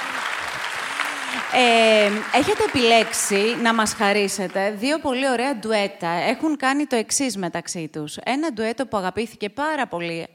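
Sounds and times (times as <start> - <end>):
audience applause: 0.0 - 4.8
speech: 1.3 - 10.3.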